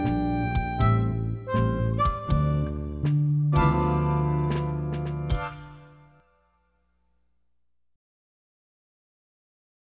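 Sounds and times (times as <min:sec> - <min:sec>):
jazz tune on harmonica in third position: 0:00.0 - 0:06.3.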